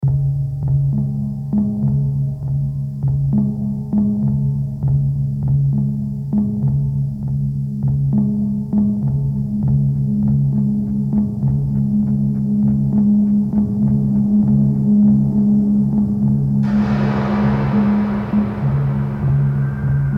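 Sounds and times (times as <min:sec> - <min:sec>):
minimalist ambient music: 0:00.0 - 0:20.1.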